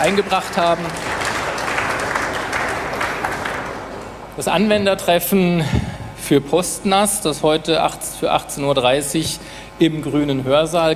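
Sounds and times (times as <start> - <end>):
speech: 0.0 - 1.2, 4.4 - 10.9
audience applause: 0.0 - 4.2.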